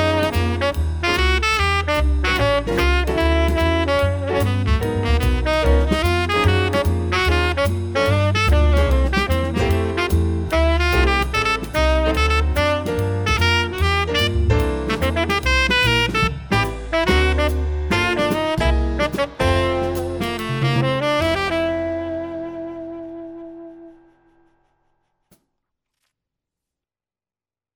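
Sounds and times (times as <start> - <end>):
swing etude on tenor sax: 0.0 - 24.4.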